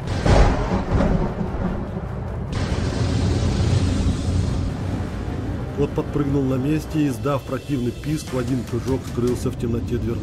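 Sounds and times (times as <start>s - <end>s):
deafening thunderclap rolling across the area: 0.0s - 6.3s
speech: 5.8s - 10.2s.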